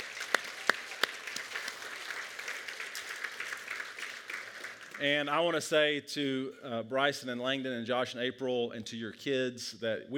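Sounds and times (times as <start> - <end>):
congregation applauding: 0.0 - 5.6
speech: 5.0 - 10.1.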